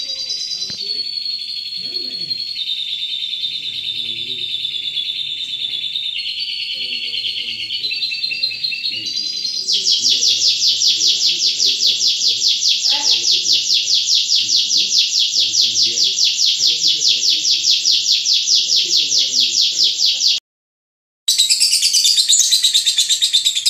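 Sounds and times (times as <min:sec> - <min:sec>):
lovebird giving a long buzzy chattering trill: 0:00.0 - 0:20.4, 0:21.3 - 0:23.6.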